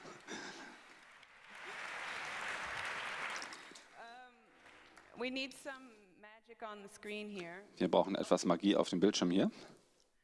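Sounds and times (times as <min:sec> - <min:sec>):
audience applause in a hall: 0:00.0 - 0:04.0, 0:04.6 - 0:05.2
speech: 0:05.2 - 0:10.2.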